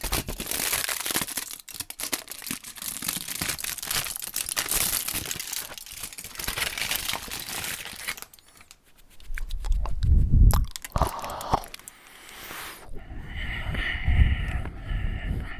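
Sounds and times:
person eating crunchy snacks: 0:00.1 - 0:13.9
quiet chewing: 0:03.4 - 0:15.5.

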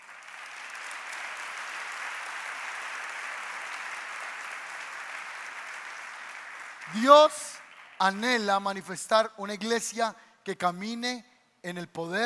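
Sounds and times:
applause: 0:00.0 - 0:09.0
speech: 0:06.9 - 0:12.2.

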